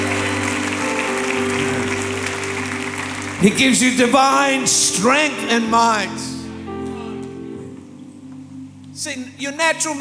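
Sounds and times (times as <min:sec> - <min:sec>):
audience clapping: 0:00.0 - 0:05.3
speech: 0:03.4 - 0:06.3, 0:09.1 - 0:09.9.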